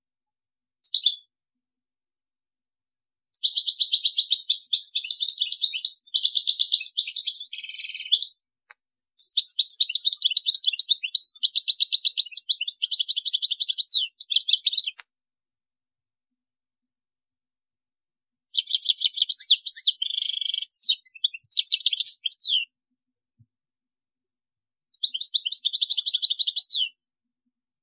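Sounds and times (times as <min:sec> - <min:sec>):
European goldfinch twittering song: 0:03.3 - 0:08.6, 0:09.2 - 0:15.0, 0:18.5 - 0:22.7, 0:24.9 - 0:27.0.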